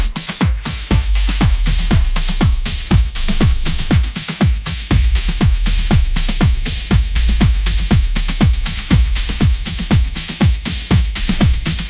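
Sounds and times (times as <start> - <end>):
sunlit phonk groove: 0.0 - 11.8.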